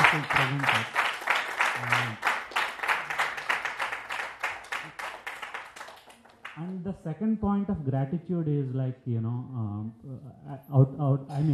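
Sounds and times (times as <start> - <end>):
audience in Boston applauding a speaker: 0.0 - 6.8
speech: 0.1 - 1.0, 1.8 - 2.3, 6.6 - 11.5.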